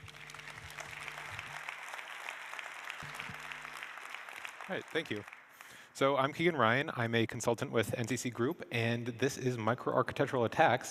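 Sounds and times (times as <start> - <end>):
audience applause: 0.0 - 5.9
speech: 4.7 - 5.4, 6.0 - 10.9.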